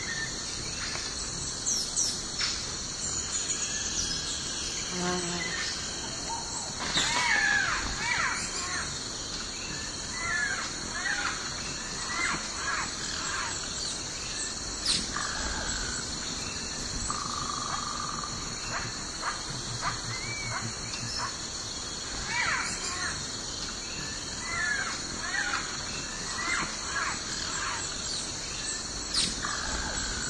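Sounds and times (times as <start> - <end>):
steady high insect drone in a morning forest: 0.0 - 30.2
bird calls in a morning forest: 4.7 - 30.2.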